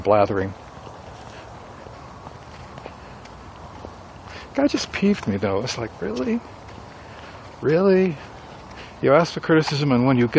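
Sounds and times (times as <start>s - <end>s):
speech: 0.0s - 0.6s, 4.6s - 6.6s, 7.6s - 8.3s, 9.0s - 10.3s
hiss: 0.0s - 10.3s
soft footsteps of a person out on a walk: 0.1s - 10.3s.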